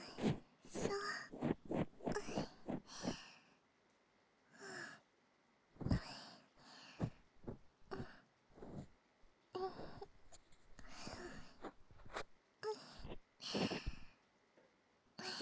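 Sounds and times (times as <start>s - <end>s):
nurse cleaning ears: 0.0s - 3.2s, 5.8s - 6.0s, 7.0s - 8.9s, 9.6s - 12.3s, 13.0s - 14.1s.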